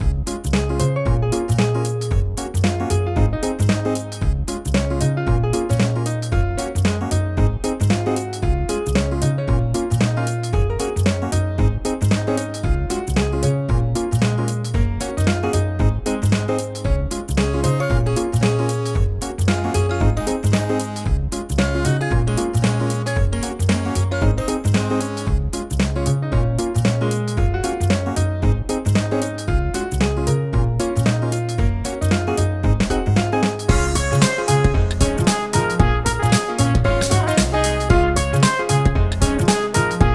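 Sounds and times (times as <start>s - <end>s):
music theme: 0.0s - 40.1s.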